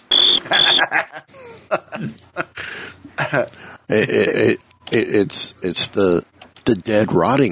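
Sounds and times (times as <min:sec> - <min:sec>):
squirrel chirping: 0:00.1 - 0:00.8
laughter: 0:00.4 - 0:05.2
speech: 0:00.8 - 0:02.3, 0:03.3 - 0:07.5.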